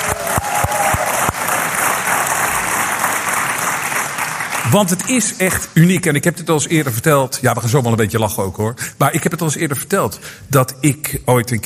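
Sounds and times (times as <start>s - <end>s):
audience applause: 0.0s - 5.7s
speech: 4.7s - 11.6s.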